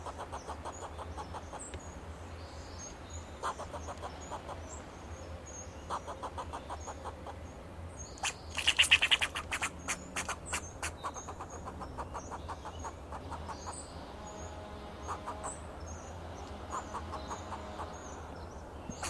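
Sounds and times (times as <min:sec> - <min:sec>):
fox squirrel clucking and chattering: 0:00.0 - 0:01.8, 0:03.4 - 0:04.8, 0:05.9 - 0:07.4, 0:08.2 - 0:13.9, 0:16.7 - 0:18.2, 0:18.9 - 0:19.0
faint high bird chirps: 0:00.0 - 0:19.0.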